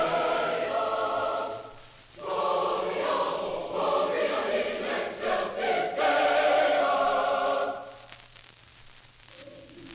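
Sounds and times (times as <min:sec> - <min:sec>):
choir singing: 0:00.0 - 0:07.9.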